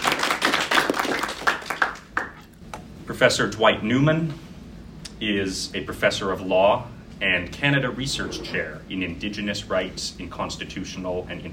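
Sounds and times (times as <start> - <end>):
small audience applause: 0.0 - 2.4
speech: 3.1 - 4.5, 5.2 - 11.5.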